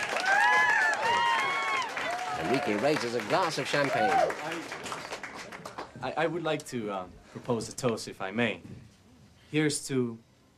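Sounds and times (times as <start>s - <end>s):
voices calling out and cheering: 0.0s - 4.8s
crowd applause: 0.0s - 6.0s
speech: 2.4s - 4.9s, 6.0s - 8.8s, 9.5s - 10.3s.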